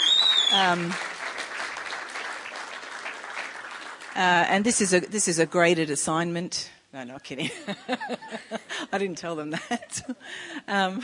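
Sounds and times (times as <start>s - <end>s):
audience clapping: 0.0s - 4.8s
speech: 0.5s - 1.1s, 4.2s - 11.0s.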